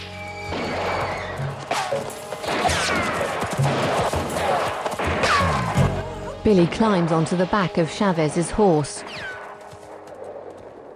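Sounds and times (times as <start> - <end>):
gunfire fired down from the top of a slope: 0.5 - 5.8
speech: 6.5 - 9.3.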